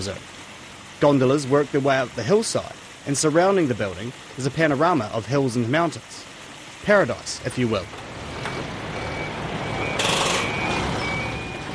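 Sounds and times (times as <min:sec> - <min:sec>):
speech: 0:00.0 - 0:00.4, 0:01.0 - 0:08.7
heavy vehicle engine rumble at a construction site: 0:07.4 - 0:11.7
high beeping tone: 0:08.5 - 0:11.7.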